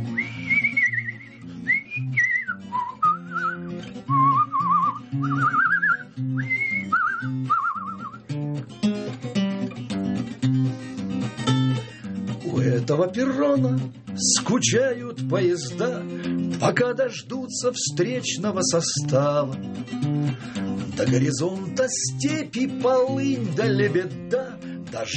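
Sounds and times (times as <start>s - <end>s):
instrumental music: 0.0s - 25.1s
person whistling calling horses to water: 0.1s - 8.3s
speech: 12.9s - 25.1s.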